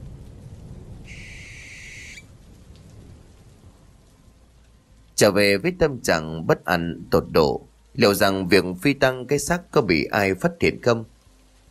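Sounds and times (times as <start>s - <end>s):
barn owl crying out: 1.1s - 2.3s
speech: 5.2s - 11.1s.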